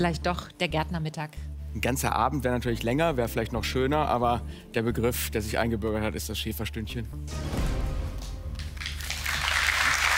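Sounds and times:
speech: 0.0s - 7.7s
audience applause: 8.5s - 10.1s.

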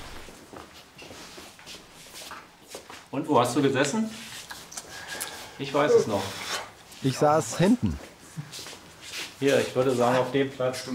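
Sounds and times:
footsteps of people walking: 0.0s - 3.1s, 6.8s - 9.4s
constant noisy background: 0.0s - 10.9s
speech: 3.1s - 4.3s, 5.6s - 6.4s, 7.0s - 8.6s, 9.4s - 10.9s.

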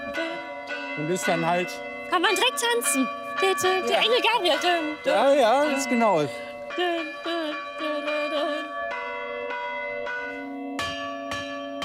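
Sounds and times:
church bells rung by hand-struck clappers: 0.0s - 11.8s
speech: 1.0s - 7.4s.

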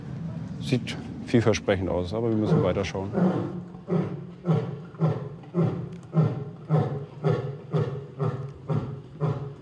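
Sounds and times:
speech: 0.6s - 4.7s
lion roaring to mark territory: 2.3s - 9.6s.

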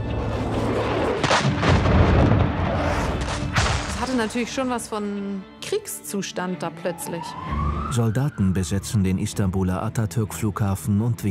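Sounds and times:
explosion-like booms from low-flying F-16 jets: 0.4s - 4.3s
speech: 4.2s - 11.2s.

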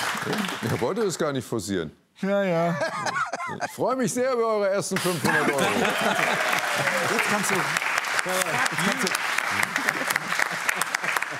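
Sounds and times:
applause: 0.0s - 1.2s, 5.5s - 11.3s
speech: 0.2s - 9.2s
laughter: 2.6s - 3.8s, 5.0s - 7.6s, 8.6s - 11.3s.

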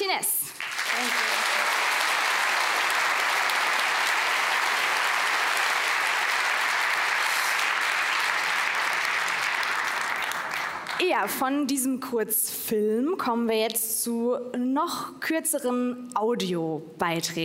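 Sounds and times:
audience applause: 0.5s - 11.1s
speech: 11.2s - 17.4s.

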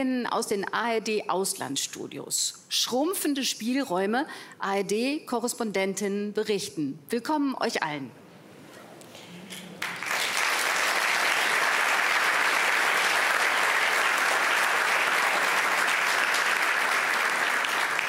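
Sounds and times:
speech: 0.0s - 8.2s
live audience applauding: 9.8s - 18.0s.

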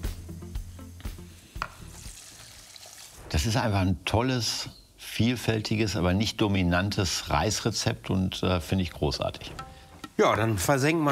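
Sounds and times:
water sizzling in a hot pan: 0.0s - 3.8s
speech: 3.3s - 9.6s, 10.2s - 11.1s.

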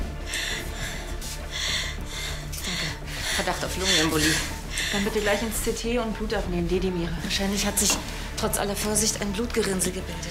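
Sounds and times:
deep breathing during a medical examination: 0.0s - 5.6s
speech: 3.4s - 10.3s.

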